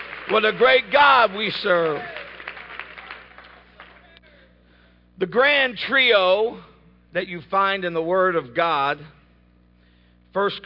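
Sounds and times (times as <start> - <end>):
seated audience clapping hands: 0.0 - 4.4
speech: 0.3 - 2.2, 5.2 - 9.2, 10.3 - 10.6.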